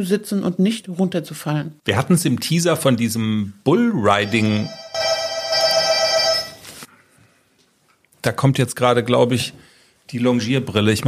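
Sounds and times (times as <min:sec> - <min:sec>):
speech: 0:00.0 - 0:05.2, 0:08.2 - 0:11.0
doorbell ringing: 0:04.2 - 0:06.7.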